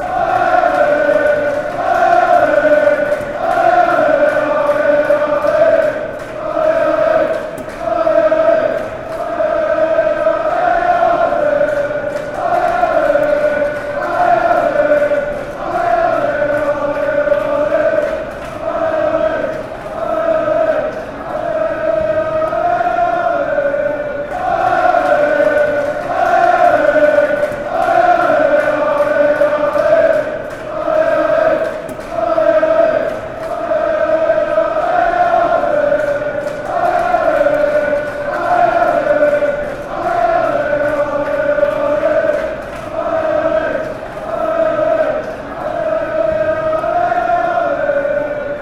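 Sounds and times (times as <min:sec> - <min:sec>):
fans chanting: 0:00.0 - 0:48.6.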